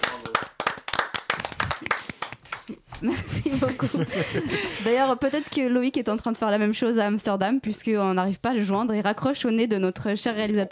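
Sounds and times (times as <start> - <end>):
applause, hands clapping: 0.0 - 4.0
laughter: 3.0 - 5.5
speech: 3.0 - 10.6.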